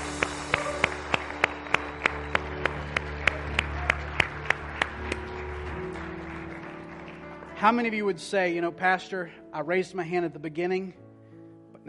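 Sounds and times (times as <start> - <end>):
audience clapping hands: 0.0 - 8.2
speech: 7.6 - 11.0.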